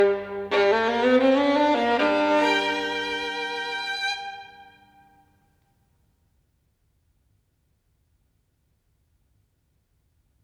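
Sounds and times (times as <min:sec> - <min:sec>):
classical caprice in G minor: 0:00.0 - 0:05.1.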